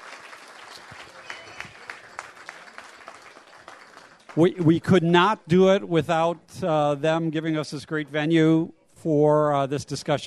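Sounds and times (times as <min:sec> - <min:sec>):
audience applause: 0:00.0 - 0:04.8
speech: 0:04.4 - 0:10.2.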